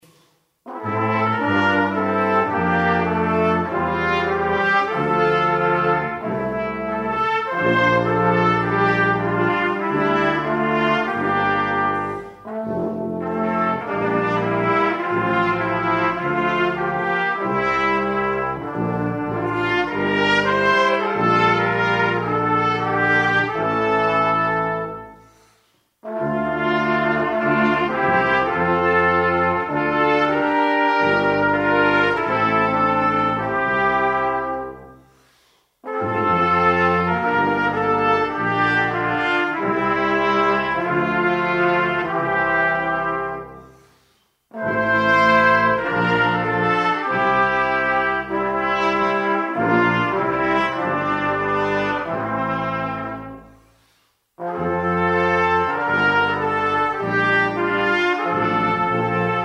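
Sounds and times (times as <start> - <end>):
trombone choir playing: 0.0 - 25.4, 26.0 - 35.2, 35.8 - 43.9, 44.5 - 53.6, 54.4 - 59.4.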